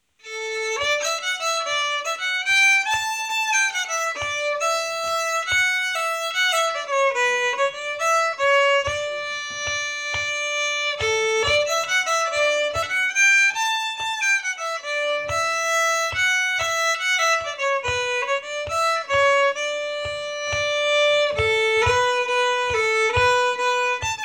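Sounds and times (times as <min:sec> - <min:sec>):
Christmas song from Älvdalen: 0:00.2 - 0:24.2.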